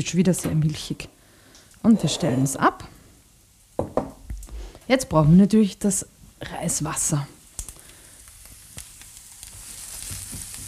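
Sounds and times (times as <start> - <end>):
speech: 0.0 - 1.2, 1.8 - 2.9, 4.9 - 7.4
tofu frying and crisping in a pan: 6.6 - 10.6.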